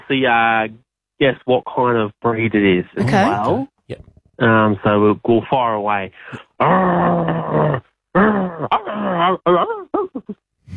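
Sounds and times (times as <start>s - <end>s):
speech: 0.1s - 10.7s
person imitating a growling dog: 3.0s - 4.1s, 6.6s - 9.5s.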